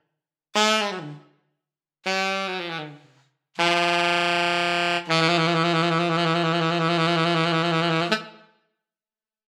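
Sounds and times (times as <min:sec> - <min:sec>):
alto saxophone: 0:00.6 - 0:01.4, 0:02.0 - 0:08.6.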